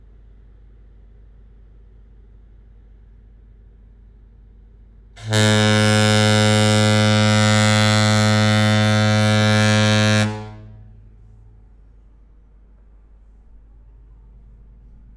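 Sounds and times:
cruise liner foghorn: 5.2s - 11.2s.

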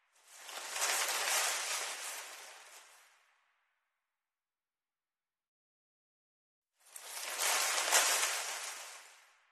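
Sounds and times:
rustling leaves: 0.2s - 3.4s, 6.8s - 9.5s.

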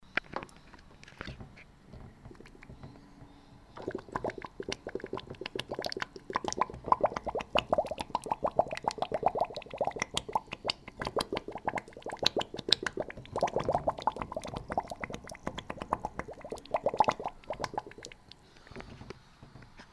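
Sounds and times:
blowing bubbles in liquid through a straw: 3.8s - 18.5s.

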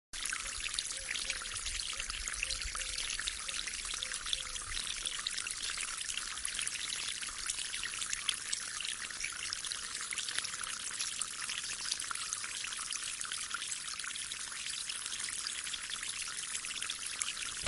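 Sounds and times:
small brook babbling in a forest: 0.2s - 17.6s.

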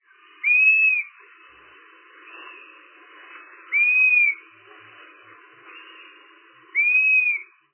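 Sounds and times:
long whistle calling to relatives: 0.4s - 1.2s, 3.7s - 4.5s, 6.7s - 7.6s.

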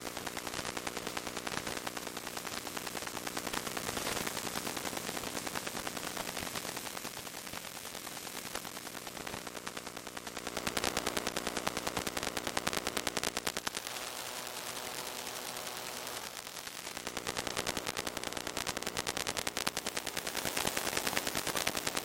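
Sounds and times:
electromagnetic frequencies: 0.0s - 22.0s.

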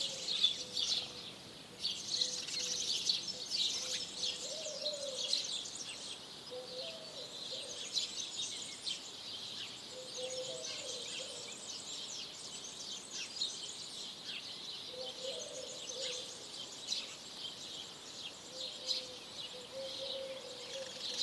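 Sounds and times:
forest birdsong: 0.0s - 21.2s.

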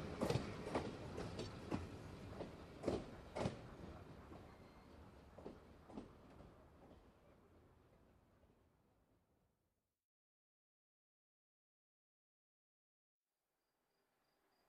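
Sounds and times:
steam locomotive approaching: 0.0s - 8.6s.

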